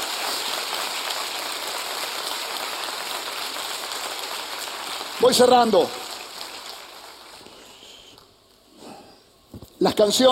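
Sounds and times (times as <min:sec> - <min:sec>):
audience applauding: 0:00.0 - 0:08.0
speech: 0:05.2 - 0:06.0, 0:09.8 - 0:10.3.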